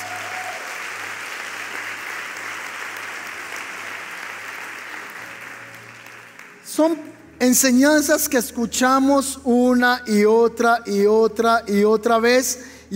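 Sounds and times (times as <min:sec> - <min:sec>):
audience applause: 0:00.0 - 0:06.7
speech: 0:06.7 - 0:12.9.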